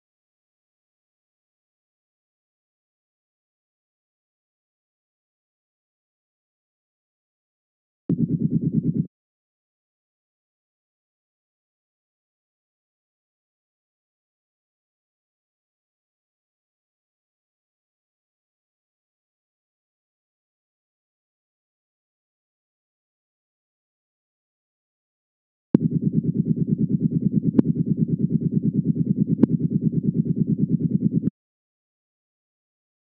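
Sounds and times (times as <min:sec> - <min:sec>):
helicopter: 0:08.1 - 0:09.1, 0:25.8 - 0:31.3.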